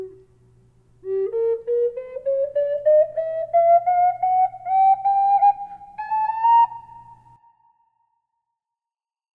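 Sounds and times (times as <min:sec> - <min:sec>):
flute with reverb: 0:01.0 - 0:08.2.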